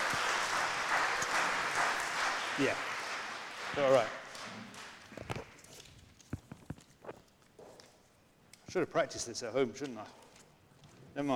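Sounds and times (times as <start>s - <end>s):
audience applause: 0.0s - 5.6s
speech: 2.6s - 2.9s, 3.7s - 4.7s, 8.7s - 10.2s, 11.2s - 11.3s.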